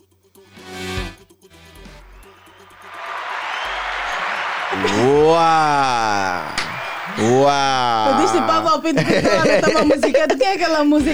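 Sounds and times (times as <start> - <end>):
audience applause: 2.4 - 8.9
laughter: 3.1 - 11.1
speech: 4.8 - 6.6, 7.2 - 11.1.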